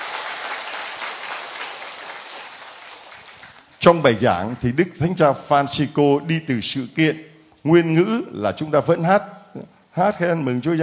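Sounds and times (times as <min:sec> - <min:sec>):
applause from a church congregation: 0:00.0 - 0:03.7
speech: 0:03.8 - 0:10.8.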